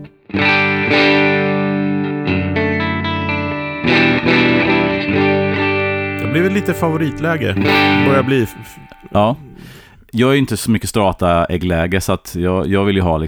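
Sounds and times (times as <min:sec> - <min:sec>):
electric guitar: 0:00.0 - 0:09.9
speech: 0:06.4 - 0:13.2.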